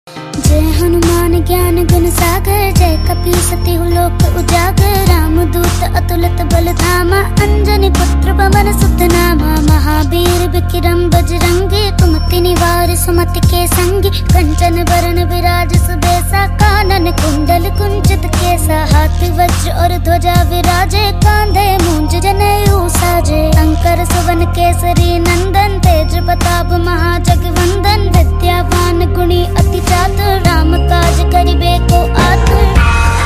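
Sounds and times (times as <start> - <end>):
child singing Hindu devotional hymn ringtone: 0.6 - 32.8.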